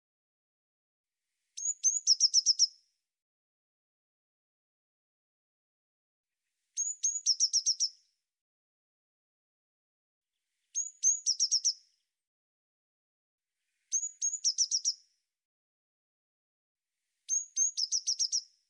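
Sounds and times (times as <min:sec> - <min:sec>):
Eurasian blue tit thin high whistled notes: 0:01.5 - 0:02.8, 0:06.7 - 0:08.1, 0:10.6 - 0:12.0, 0:13.8 - 0:15.1, 0:17.2 - 0:18.6.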